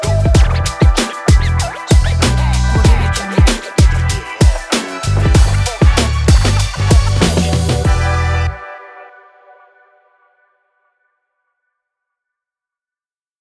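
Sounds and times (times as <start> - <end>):
hip hop urban logo intro: 0.0 - 8.8.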